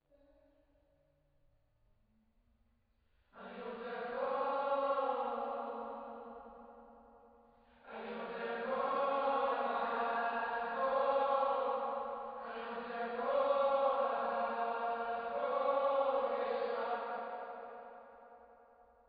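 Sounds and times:
choir singing: 3.4 - 6.3, 7.8 - 17.9.

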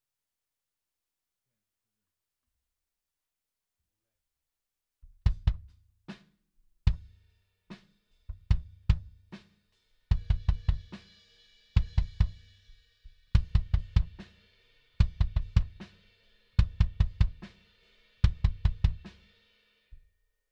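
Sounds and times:
kick drum: 5.0 - 5.7, 6.9 - 7.2, 8.3 - 9.3, 10.1 - 10.9, 13.4 - 14.2, 15.0 - 15.8, 16.6 - 17.5, 18.2 - 19.0.

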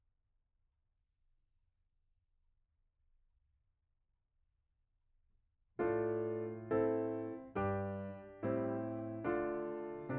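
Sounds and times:
piano note B: 5.8 - 10.1.

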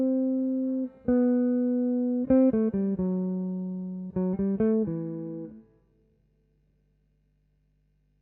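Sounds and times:
guitar: 0.0 - 5.8.

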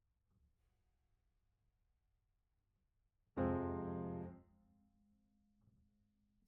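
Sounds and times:
piano: 3.4 - 4.6.

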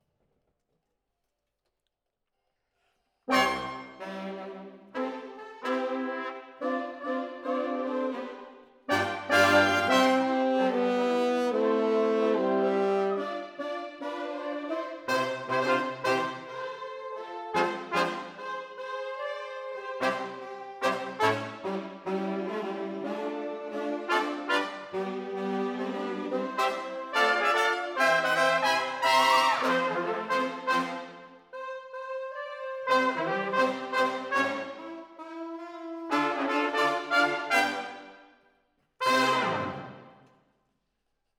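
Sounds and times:
horns playing: 3.3 - 38.2, 39.0 - 40.1.

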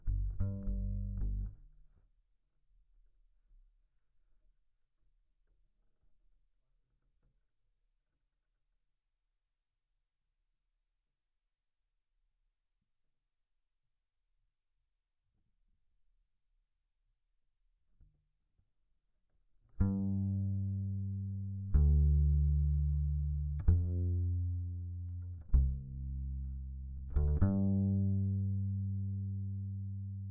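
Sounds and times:
bass guitar recorded by direct input: 0.0 - 1.7, 19.8 - 30.3.

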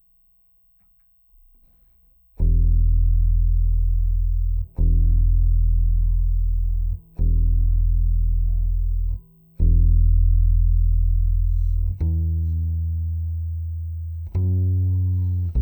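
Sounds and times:
bass guitar C note through DI: 1.5 - 15.5.

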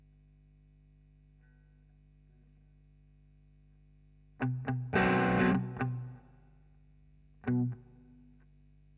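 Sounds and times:
guitar recorded with Royer microphone: 4.4 - 6.3, 7.4 - 8.5.

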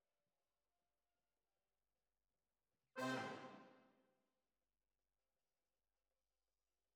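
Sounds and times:
horns: 3.0 - 3.8.

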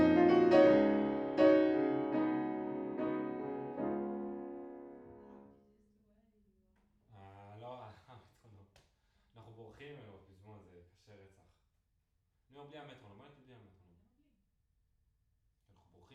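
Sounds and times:
piano in a room: 0.0 - 5.8.

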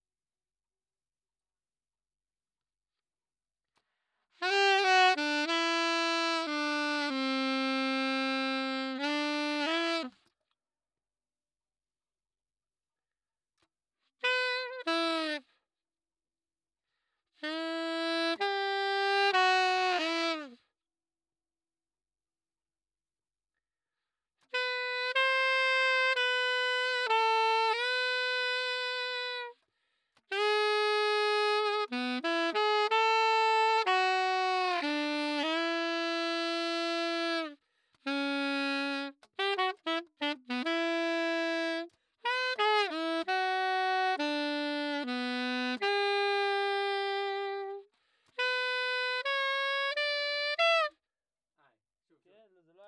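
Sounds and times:
saxophone: 4.3 - 10.5, 14.0 - 15.7, 17.0 - 20.8, 24.4 - 51.1.

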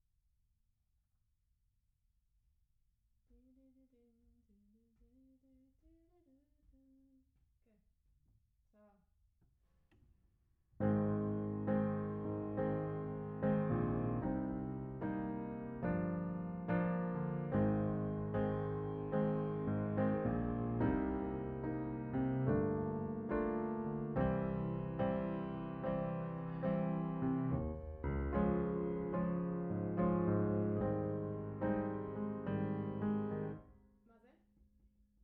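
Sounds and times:
piano: 10.8 - 33.7.

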